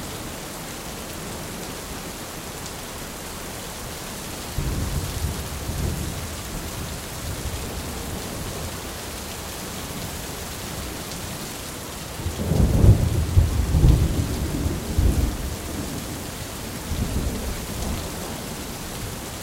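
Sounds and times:
rain: 0.0 - 19.4
thunder: 4.6 - 7.5, 12.3 - 16.2.

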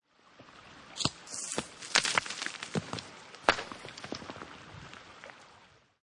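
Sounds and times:
rocks falling into a river: 1.0 - 5.4.

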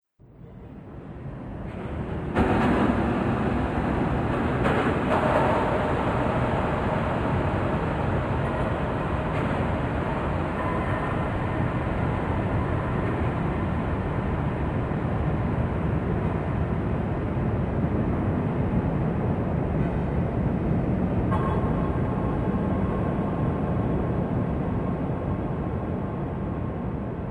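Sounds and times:
horror scene ominous dark rumbles: 0.6 - 27.2.

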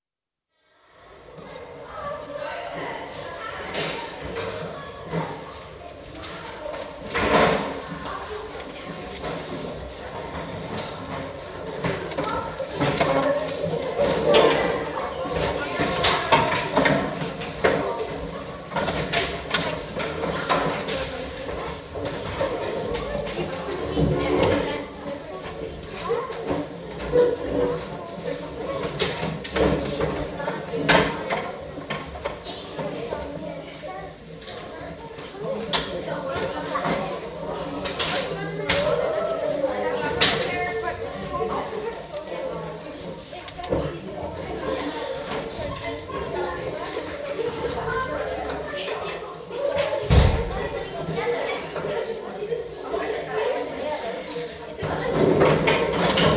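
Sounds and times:
second-year pupils chattering in a classroom: 1.2 - 56.3.

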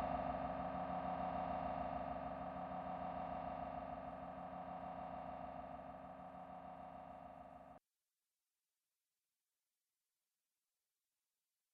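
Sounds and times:
science fiction deep power drone: 0.0 - 7.8.

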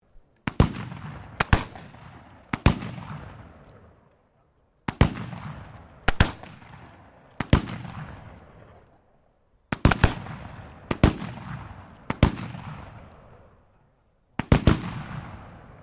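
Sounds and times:
black powder repeater rifles firing at a shooting range: 0.4 - 3.7, 4.8 - 8.8, 9.7 - 13.4, 14.4 - 15.8.

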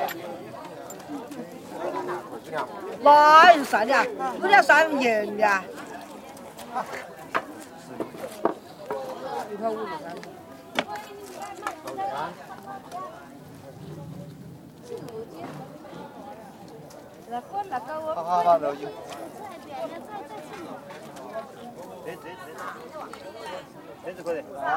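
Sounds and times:
rural vegetable market near Wuhan in China: 0.0 - 24.7.

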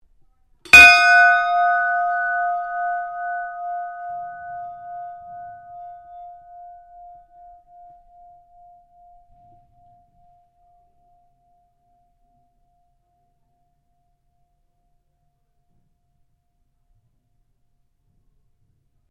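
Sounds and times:
ship's bell ringing: 0.7 - 10.2.

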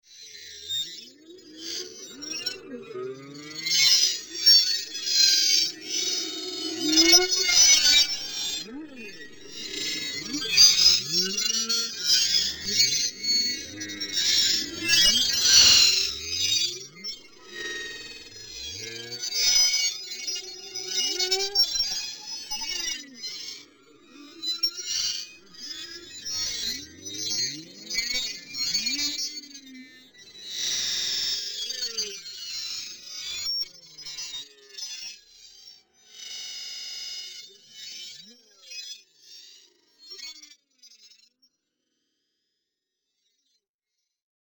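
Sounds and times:
ambient flanger science fiction sound effect: 1.2 - 31.4.

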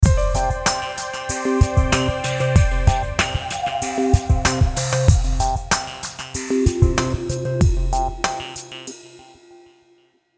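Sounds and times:
synth piano: 0.0 - 8.2
logo drum beat: 0.0 - 8.9.

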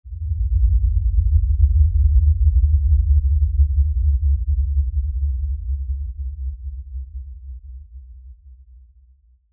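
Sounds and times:
LFE rumble with swelling low bass movement: 0.1 - 8.7.

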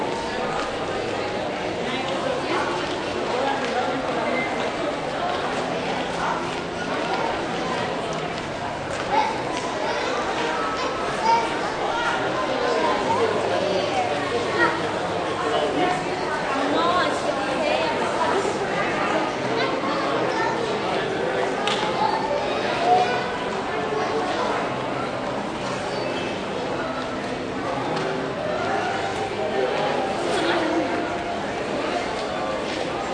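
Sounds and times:
many people walking in an indoor American shopping mall: 0.0 - 10.0, 24.6 - 33.1
busy crowd talking in an indoor American shopping mall: 0.0 - 33.1.

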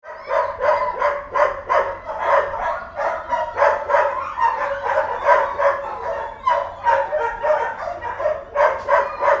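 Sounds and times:
dogs barking together: 0.0 - 9.3.

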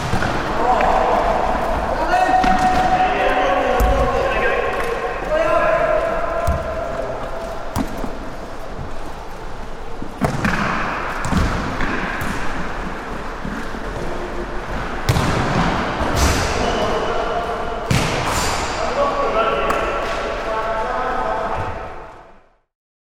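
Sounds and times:
five-a-side soccer team playing indoors: 0.0 - 22.7.

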